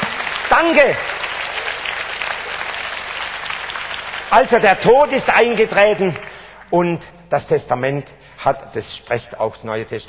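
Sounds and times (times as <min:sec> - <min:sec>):
congregation applauding during a church service: 0:00.0 - 0:06.9
speech: 0:00.6 - 0:01.2, 0:04.3 - 0:10.0.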